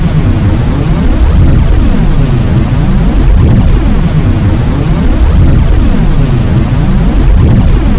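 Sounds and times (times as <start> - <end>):
warp effect: 0.0 - 7.9.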